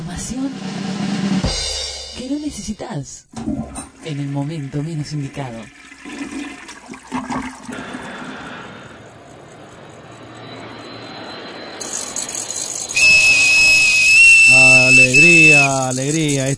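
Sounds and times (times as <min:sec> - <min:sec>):
speech: 0:00.2 - 0:00.9, 0:02.3 - 0:05.8, 0:15.7 - 0:16.5
rushing flush-like noise: 0:03.4 - 0:09.0, 0:11.8 - 0:16.3
small whistle blast: 0:10.4 - 0:16.0.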